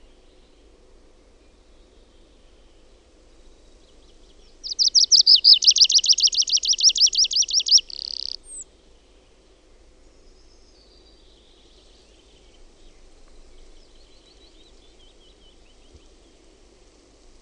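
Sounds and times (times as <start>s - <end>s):
tree pipit singing: 4.6s - 8.6s.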